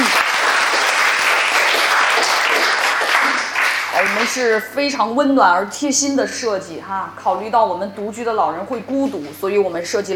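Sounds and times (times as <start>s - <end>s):
audience applause: 0.0s - 4.7s
speech: 4.3s - 10.1s.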